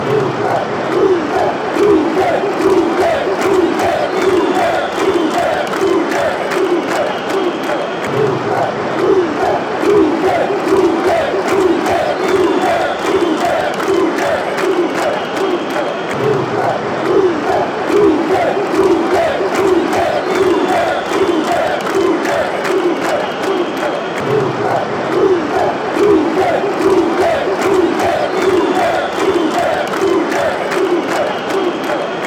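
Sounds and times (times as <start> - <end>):
chanting in Croatia: 0.0 - 32.2.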